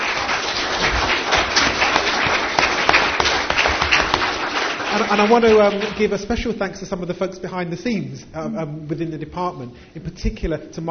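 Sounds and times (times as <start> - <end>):
round of applause: 0.0 - 6.2
speech: 5.1 - 10.9.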